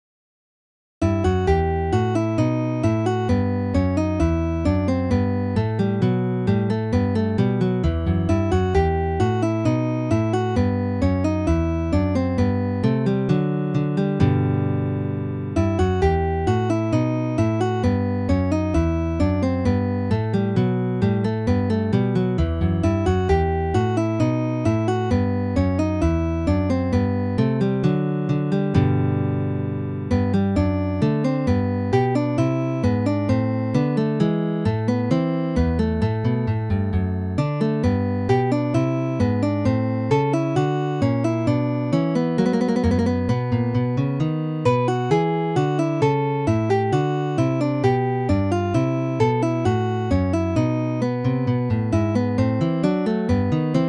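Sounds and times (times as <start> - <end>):
lute piece: 1.0 - 34.0, 34.6 - 53.8.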